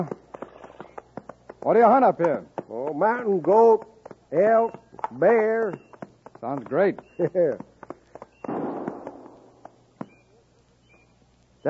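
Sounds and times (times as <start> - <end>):
speech: 0.0 - 0.2, 1.6 - 7.7
hiss: 0.0 - 11.6
gunshots: 8.4 - 9.6.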